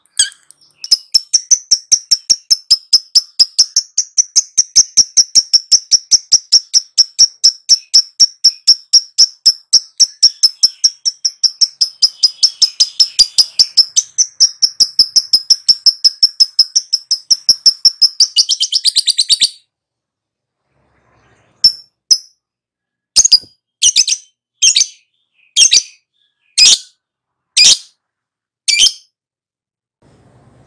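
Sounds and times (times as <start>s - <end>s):
lovebird chattering: 0.0s - 19.6s, 23.2s - 26.9s, 27.6s - 27.9s.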